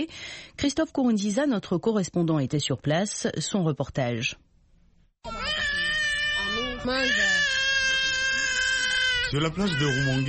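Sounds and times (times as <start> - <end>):
speech: 0.0 - 4.5, 5.2 - 5.6, 6.8 - 7.5, 9.3 - 10.2
hungry baby crying: 5.2 - 10.2.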